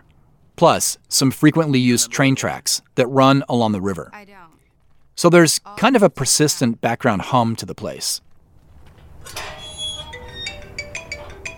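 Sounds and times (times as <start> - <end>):
speech: 0.6 - 4.3, 5.2 - 8.3, 9.2 - 9.5
metal gate opening and closing: 9.2 - 11.5.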